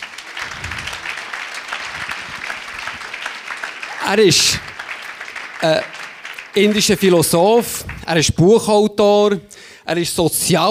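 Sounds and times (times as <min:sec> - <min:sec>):
audience applause: 0:00.0 - 0:08.4
speech: 0:04.1 - 0:04.7, 0:05.6 - 0:06.0, 0:06.6 - 0:10.6.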